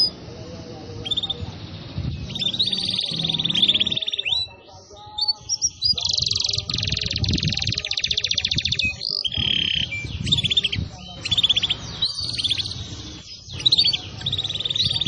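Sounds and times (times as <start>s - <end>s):
canary song used as a lure to attract birds: 0.0s - 15.0s.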